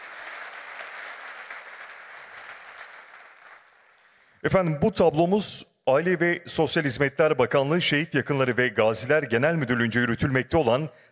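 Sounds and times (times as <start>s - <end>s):
audience applause at a commemoration ceremony: 0.0s - 4.0s
speech: 4.4s - 11.1s.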